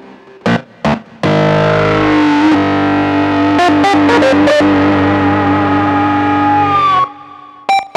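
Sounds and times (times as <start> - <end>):
grunge lead: 0.5 - 7.9.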